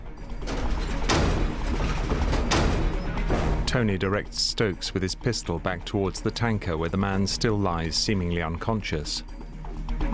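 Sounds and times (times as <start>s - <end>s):
heavy metal hatch doors slamming shut: 0.2s - 3.7s
speech: 3.7s - 9.4s.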